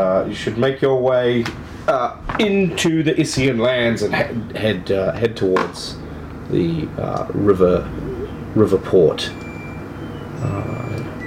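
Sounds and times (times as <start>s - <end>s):
speech: 0.0s - 9.4s, 10.4s - 11.2s
washing machine end-of-cycle melody: 9.2s - 11.2s.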